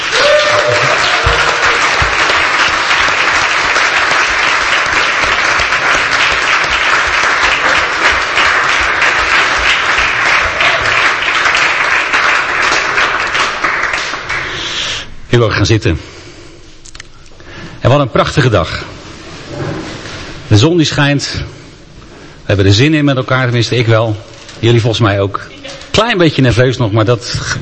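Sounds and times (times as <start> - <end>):
audience applause for a couple: 0.0 - 14.8
speech: 15.4 - 16.1, 17.9 - 19.0, 20.6 - 21.6, 22.5 - 27.6.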